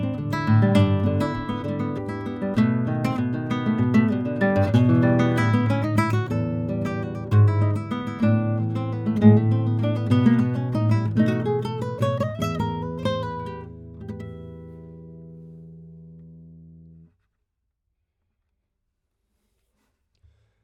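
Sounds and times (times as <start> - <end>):
classical guitar: 0.0 - 17.1.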